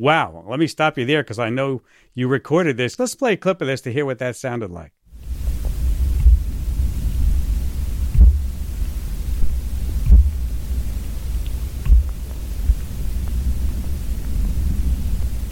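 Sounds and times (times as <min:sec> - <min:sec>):
speech: 0:00.0 - 0:05.0
steady low rumbling hum: 0:05.2 - 0:15.4
tree banging thumps carried through the ground into a hydrophone: 0:05.2 - 0:15.4.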